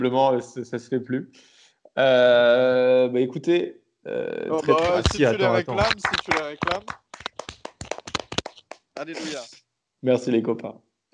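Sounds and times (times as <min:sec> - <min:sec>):
speech: 0:00.0 - 0:07.0, 0:09.0 - 0:10.9
people clapping: 0:04.6 - 0:09.2.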